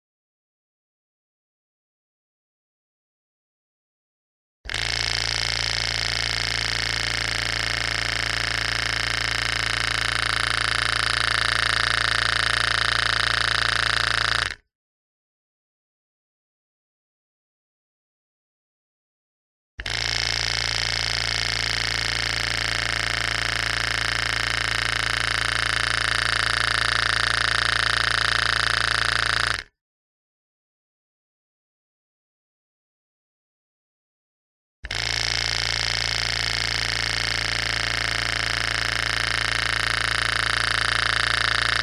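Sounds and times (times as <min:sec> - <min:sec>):
machine compressor switching on and off in short bursts recorded with a contact mic: 0:04.7 - 0:14.6, 0:19.8 - 0:29.7, 0:34.9 - 0:41.8.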